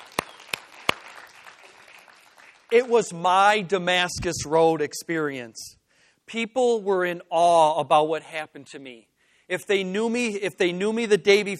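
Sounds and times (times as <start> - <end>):
congregation clapping hands during a church sermon: 0.0 - 3.6
speech: 2.7 - 11.5.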